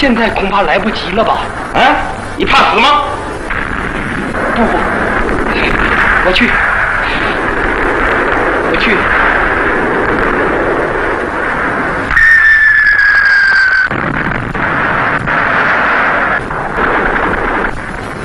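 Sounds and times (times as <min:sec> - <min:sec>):
speech: 0:00.0 - 0:03.3, 0:04.6 - 0:06.7, 0:08.7 - 0:09.2
artillery cannon fire in a wartime radio drama: 0:00.0 - 0:18.2
high whistling tone: 0:12.1 - 0:13.9.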